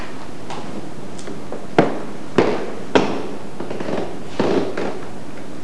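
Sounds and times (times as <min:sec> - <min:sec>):
knocking on stairs: 0:01.5 - 0:05.0.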